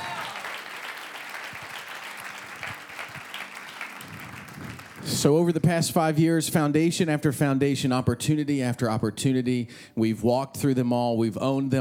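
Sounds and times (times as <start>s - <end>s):
audience shouting praise: 0.0s - 0.6s
audience hand clapping: 0.0s - 5.2s
speech: 5.0s - 11.7s.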